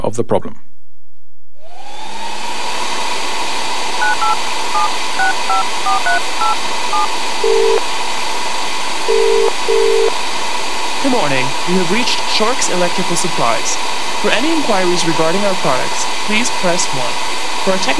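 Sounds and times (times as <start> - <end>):
speech: 0.0 - 0.7, 4.2 - 8.0, 9.0 - 10.1, 11.0 - 17.9
hissing whooshing noise: 3.0 - 17.9
telephone ringing tones: 4.0 - 7.8, 9.1 - 10.1.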